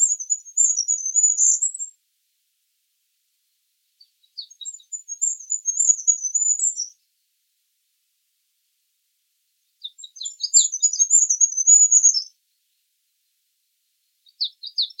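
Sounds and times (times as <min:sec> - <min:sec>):
bird singing very high rapid chirps and dense twittering: 0:00.0 - 0:02.0, 0:04.0 - 0:07.0, 0:09.7 - 0:12.3, 0:14.2 - 0:14.9.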